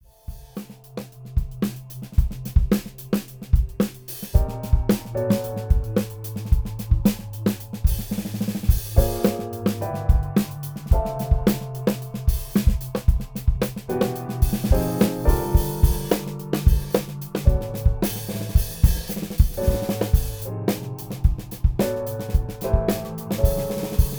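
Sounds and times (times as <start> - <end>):
breakbeat: 1.4 - 24.1.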